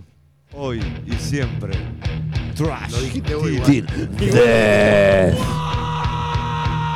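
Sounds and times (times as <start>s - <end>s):
speech: 0.5s - 5.8s
man screaming: 3.7s - 6.8s.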